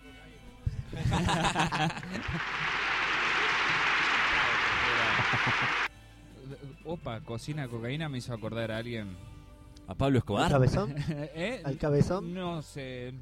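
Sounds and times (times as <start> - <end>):
laughter: 0.9 - 5.9, 10.8 - 11.3
speech: 1.1 - 2.8, 5.3 - 5.9, 6.5 - 9.3, 9.9 - 13.2
applause: 1.6 - 5.9.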